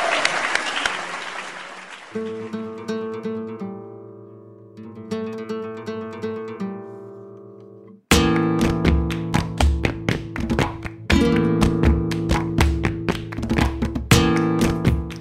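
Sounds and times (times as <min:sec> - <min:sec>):
audience clapping: 0:00.0 - 0:02.8, 0:08.3 - 0:15.1.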